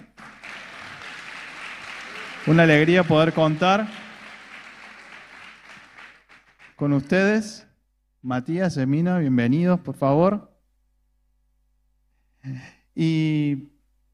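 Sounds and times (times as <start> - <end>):
welcoming applause from audience: 0.0 - 6.8
speech: 2.4 - 4.0, 6.8 - 10.5, 12.4 - 13.7.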